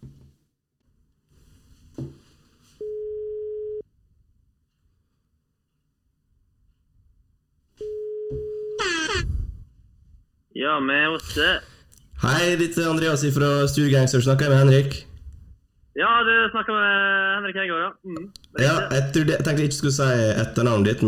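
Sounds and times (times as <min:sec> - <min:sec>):
outgoing phone call ringing tone: 0:02.8 - 0:03.8, 0:07.8 - 0:09.0
speech: 0:10.6 - 0:15.1, 0:16.0 - 0:21.0.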